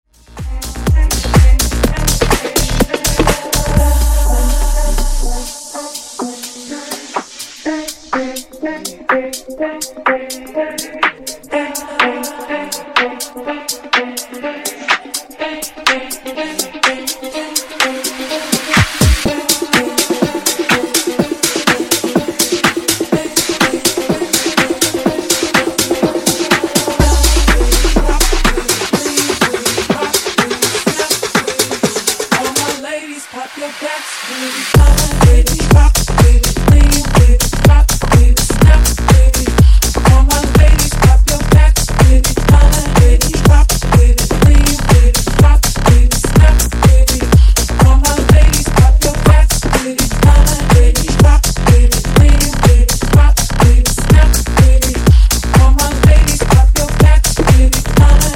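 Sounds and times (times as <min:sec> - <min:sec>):
funk music at 124 BPM: 0:00.1 - 0:32.8, 0:34.8 - 0:58.3.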